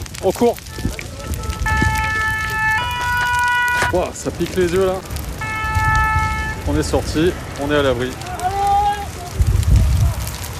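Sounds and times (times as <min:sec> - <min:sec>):
pine forest fire burning with renewed vigour: 0:00.0 - 0:10.5
speech: 0:00.2 - 0:00.7, 0:03.9 - 0:05.1, 0:06.6 - 0:08.3
high siren-like tone: 0:00.8 - 0:03.9, 0:05.4 - 0:06.6.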